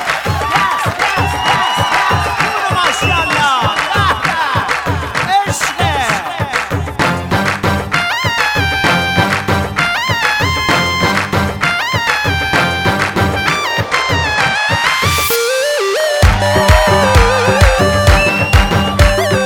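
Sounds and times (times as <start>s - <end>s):
crowd whistling: 0.0s - 5.2s, 13.5s - 19.4s
crowd clapping: 0.0s - 19.4s.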